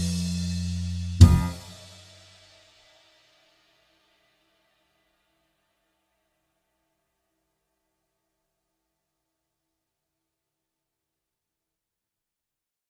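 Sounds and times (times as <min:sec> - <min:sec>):
high horn playing along: 0:00.0 - 0:01.9.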